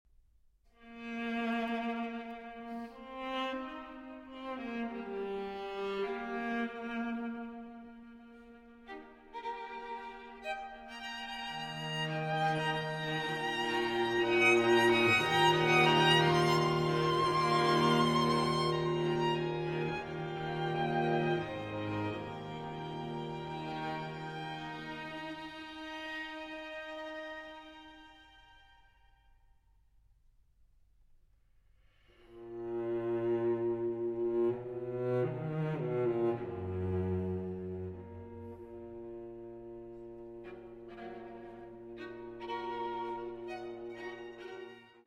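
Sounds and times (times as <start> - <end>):
string quintet playing: 0.9 - 29.0, 32.3 - 45.0.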